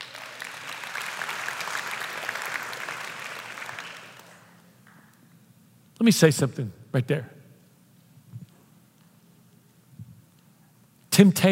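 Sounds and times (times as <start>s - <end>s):
audience applause: 0.0s - 4.6s
speech: 6.0s - 7.4s, 11.3s - 11.4s.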